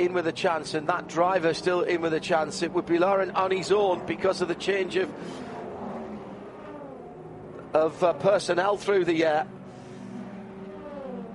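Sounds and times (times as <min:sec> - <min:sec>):
speech: 0:00.0 - 0:05.5, 0:07.7 - 0:09.6
racing cars passing at speed: 0:00.0 - 0:11.3.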